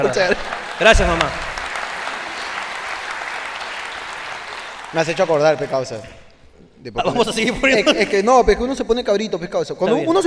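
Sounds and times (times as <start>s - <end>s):
speech: 0.0s - 1.5s, 4.9s - 6.2s, 6.8s - 10.2s
audience applause: 0.0s - 6.3s.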